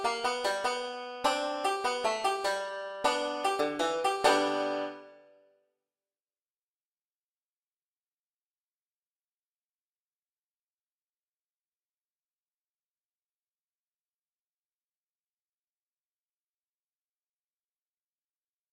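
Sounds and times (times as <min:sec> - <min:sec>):
five-string banjo solo playing blues licks: 0:00.0 - 0:05.3.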